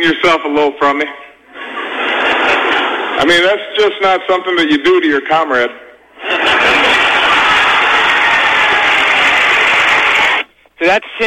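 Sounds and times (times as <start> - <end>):
speech: 0.0 - 1.3, 3.2 - 6.4, 10.8 - 11.2
laughter: 1.4 - 4.0, 6.0 - 10.5
audience applause from traders: 6.3 - 10.5.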